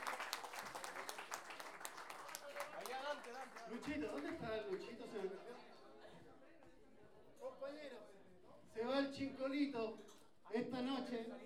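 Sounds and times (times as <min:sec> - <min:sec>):
audience applause after raffle tickets sold: 0:00.0 - 0:04.9
speech: 0:03.3 - 0:05.7, 0:08.8 - 0:11.4.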